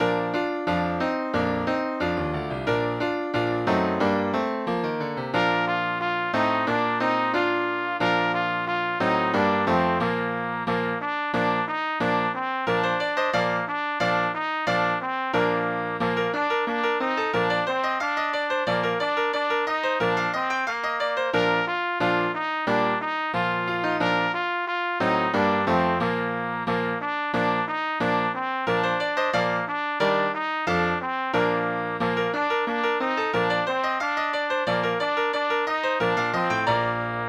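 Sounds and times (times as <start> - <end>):
trumpet: 0.0 - 4.4, 5.3 - 37.2
piano: 0.0 - 37.2.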